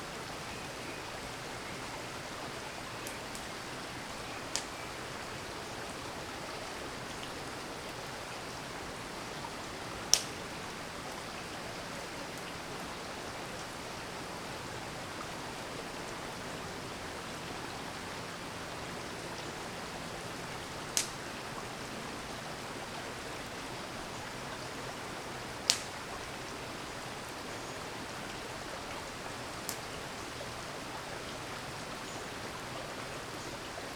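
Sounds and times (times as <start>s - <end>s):
waterfall: 0.0s - 33.9s
campfire crackling: 2.9s - 5.0s, 9.0s - 11.6s, 20.7s - 21.2s, 25.5s - 26.3s, 28.8s - 30.0s.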